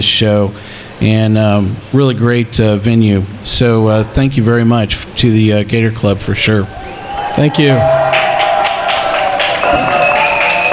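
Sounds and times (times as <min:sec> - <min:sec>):
speech: 0:00.1 - 0:08.3
crowd cheering: 0:06.4 - 0:10.7
whistles and shouts: 0:06.6 - 0:10.7
crowd clapping: 0:07.1 - 0:10.7.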